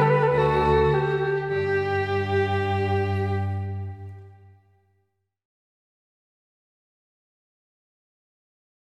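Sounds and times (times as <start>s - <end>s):
minuet: 0.0s - 4.6s.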